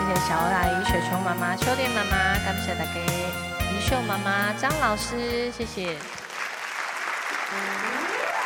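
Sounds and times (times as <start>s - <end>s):
speech: 0.1s - 6.2s
audience applause: 5.8s - 8.4s.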